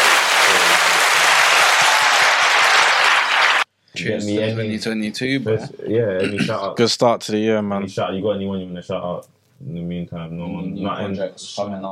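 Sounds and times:
group clapping: 0:00.0 - 0:03.7
speech: 0:04.0 - 0:11.9.

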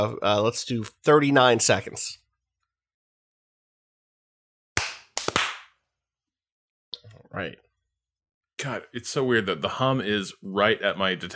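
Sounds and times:
speech: 0:00.0 - 0:02.2, 0:07.3 - 0:07.6, 0:08.6 - 0:11.3
hand clap: 0:04.8 - 0:05.8.

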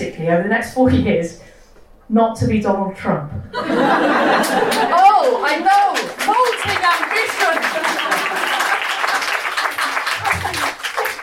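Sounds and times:
speech: 0:00.2 - 0:01.5, 0:02.1 - 0:08.0
laughter: 0:03.5 - 0:11.2
crowd applauding: 0:03.9 - 0:11.2.

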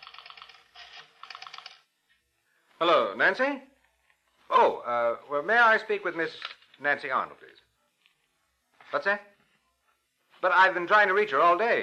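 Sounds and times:
dialing a number on a telephone: 0:00.0 - 0:01.8
speech: 0:02.8 - 0:03.7, 0:04.5 - 0:07.6, 0:08.9 - 0:09.3, 0:10.4 - 0:11.8.

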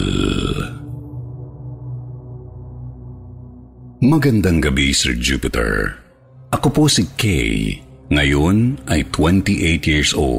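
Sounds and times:
eerie moaning groan: 0:00.0 - 0:01.0
speech: 0:04.1 - 0:10.3.

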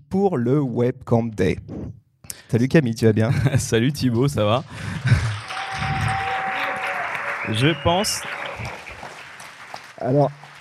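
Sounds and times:
speech: 0:00.1 - 0:05.3, 0:07.5 - 0:08.8, 0:10.0 - 0:10.4
laughter: 0:03.3 - 0:03.9, 0:04.5 - 0:09.8
audience applause: 0:04.6 - 0:10.5.

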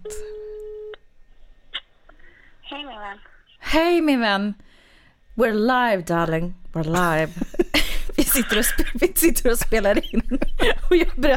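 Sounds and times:
telephone call tone: 0:00.1 - 0:01.0
speech: 0:02.8 - 0:04.8, 0:05.4 - 0:07.6, 0:08.3 - 0:11.3
laughter: 0:07.3 - 0:11.3.

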